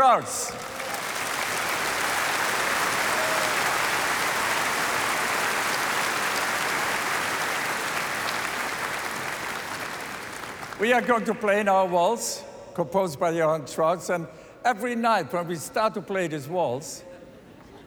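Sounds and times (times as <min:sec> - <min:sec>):
speech: 0:00.0 - 0:00.8, 0:10.8 - 0:17.1
audience applause: 0:00.0 - 0:11.1.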